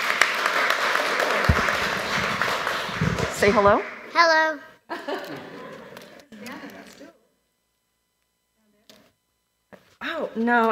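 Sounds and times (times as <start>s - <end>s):
round of applause: 0.0s - 4.3s
speech: 3.4s - 5.4s, 10.2s - 10.7s
laughter: 4.9s - 6.9s.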